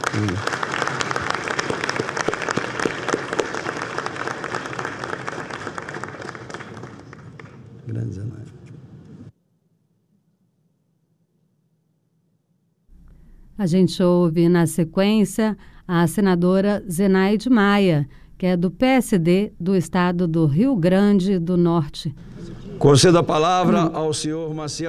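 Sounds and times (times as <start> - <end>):
audience applause: 0.0 - 8.0
speech: 0.2 - 0.6, 13.6 - 24.8.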